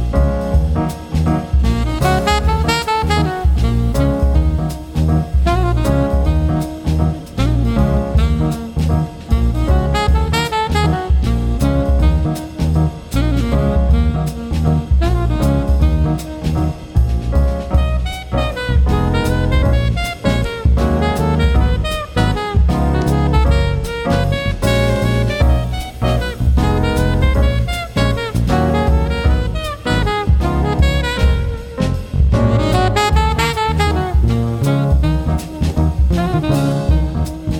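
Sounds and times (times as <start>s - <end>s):
quartet playing: 0.1s - 37.5s.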